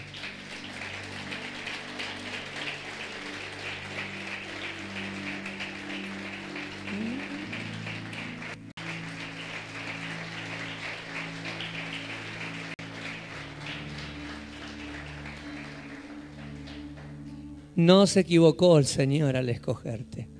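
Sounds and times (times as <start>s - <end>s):
audience applauding: 0.0s - 17.4s
speech: 17.8s - 20.3s.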